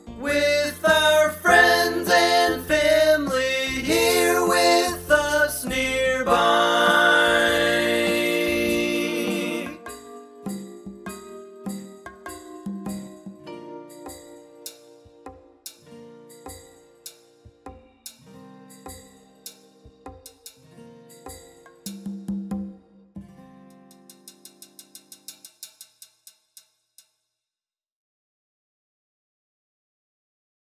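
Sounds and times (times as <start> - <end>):
person singing: 0.2 - 9.9.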